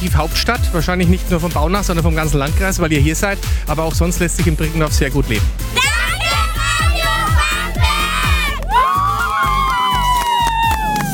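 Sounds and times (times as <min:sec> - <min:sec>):
speech: 0:00.0 - 0:05.9
thumping beat: 0:00.0 - 0:11.1
crowd cheering at village radio tour event: 0:05.8 - 0:11.1.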